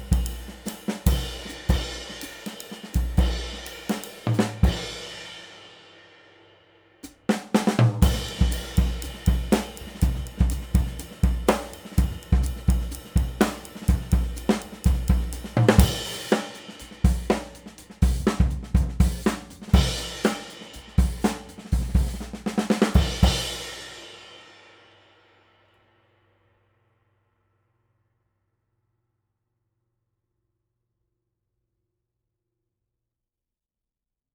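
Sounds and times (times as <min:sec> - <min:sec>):
Sabian Proto 20 AA cymbal: 0:00.0 - 0:07.2, 0:08.0 - 0:25.6.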